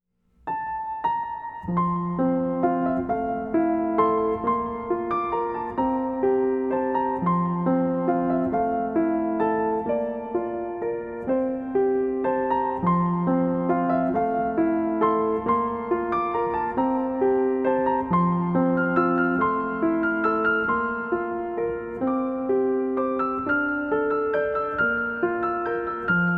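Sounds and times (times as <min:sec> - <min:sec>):
solo piano: 0:00.3 - 0:26.3.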